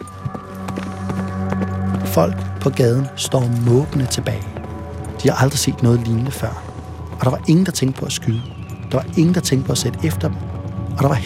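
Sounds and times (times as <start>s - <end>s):
horses galloping away: 0.0s - 11.2s
speech: 2.1s - 4.6s, 5.2s - 11.2s.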